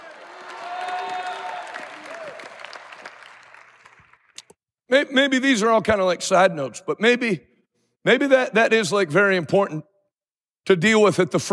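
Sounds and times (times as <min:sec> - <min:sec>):
people shouting and cheering: 0:00.0 - 0:02.6
audience clapping: 0:00.0 - 0:04.6
speech: 0:04.9 - 0:09.9, 0:10.6 - 0:11.5.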